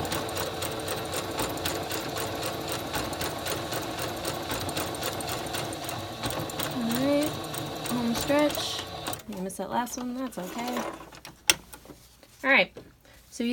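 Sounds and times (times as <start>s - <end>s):
sewing machine stitching with bobbin and regular thread: 0.0s - 9.4s
speech: 9.6s - 11.1s, 12.4s - 12.7s.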